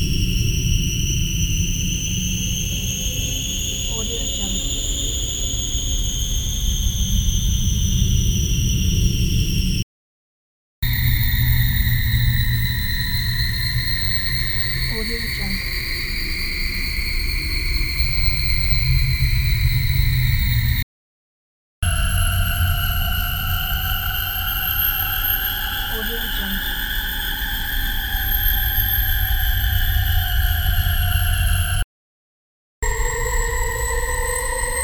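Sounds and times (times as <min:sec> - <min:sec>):
UFO scanner humming: 0:00.0 - 0:09.8, 0:10.8 - 0:20.8, 0:21.8 - 0:31.8, 0:32.8 - 0:34.8.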